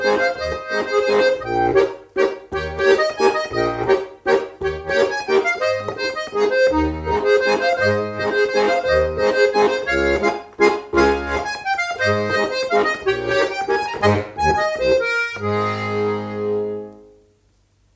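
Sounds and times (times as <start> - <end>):
waltz music: 0.0 - 17.1.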